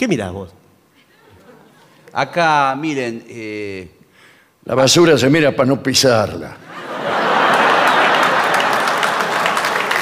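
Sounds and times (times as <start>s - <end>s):
speech: 0.0s - 0.6s, 2.1s - 4.0s, 4.6s - 7.5s
laughter: 1.0s - 2.1s, 6.6s - 10.0s
audience applause: 7.0s - 10.0s.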